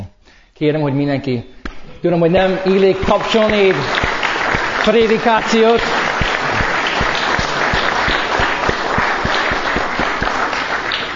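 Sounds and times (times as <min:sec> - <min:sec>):
speech: 0:00.6 - 0:04.0, 0:04.8 - 0:06.0
audience applauding: 0:02.6 - 0:11.1.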